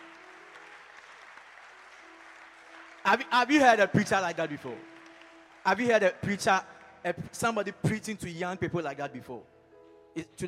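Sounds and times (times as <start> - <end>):
audience clapping: 0.0 - 8.1
speech: 3.1 - 4.9, 5.6 - 9.5, 10.2 - 10.4.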